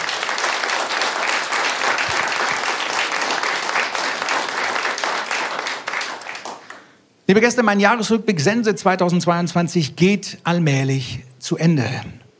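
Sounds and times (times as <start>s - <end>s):
audience applause: 0.0s - 6.9s
speech: 7.3s - 12.2s.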